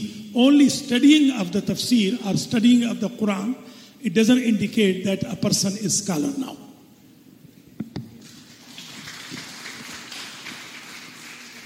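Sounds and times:
speech: 0:00.4 - 0:06.7
audience applause: 0:08.2 - 0:11.6
sharp claps: 0:08.2 - 0:11.6.

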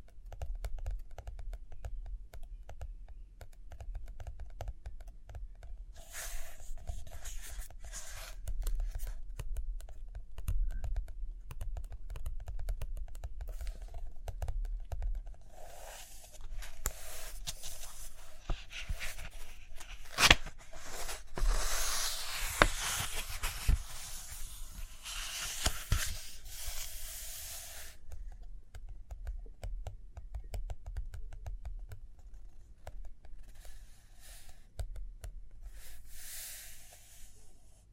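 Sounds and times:
pen tapping and scratching on paper: 0:00.0 - 0:05.8, 0:06.4 - 0:27.1, 0:27.7 - 0:35.4
paper pages turning and rustling: 0:06.1 - 0:09.1, 0:15.6 - 0:28.0.

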